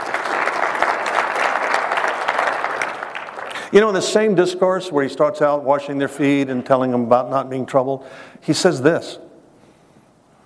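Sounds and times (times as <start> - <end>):
audience applause: 0.0 - 3.7
speech: 3.7 - 9.2.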